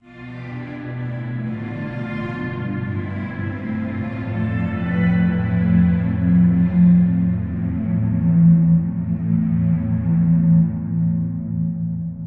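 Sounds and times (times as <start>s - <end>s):
dark mystery fantasy dance violin strings music with reverb: 0.0s - 12.2s.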